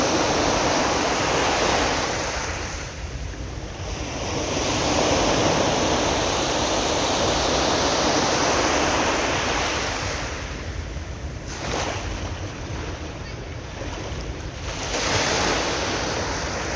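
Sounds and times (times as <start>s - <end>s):
sea waves: 0.0s - 16.7s.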